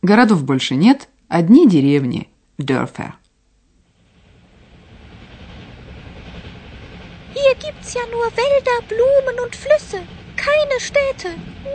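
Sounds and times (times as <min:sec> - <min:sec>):
speech: 0:00.0 - 0:03.2, 0:07.5 - 0:11.7
train rolling along the rails: 0:03.8 - 0:11.7.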